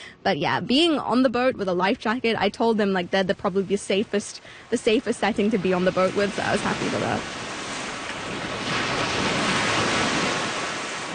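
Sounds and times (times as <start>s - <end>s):
speech: 0.2s - 7.4s
lake water waves: 2.0s - 11.1s.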